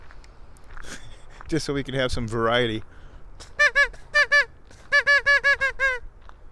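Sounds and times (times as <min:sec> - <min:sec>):
speech: 0:01.5 - 0:03.5
duck call quacking: 0:03.4 - 0:06.0.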